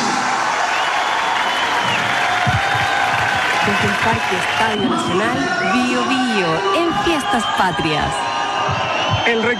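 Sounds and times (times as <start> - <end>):
applause: 0.1 - 5.6
speech: 3.8 - 9.5.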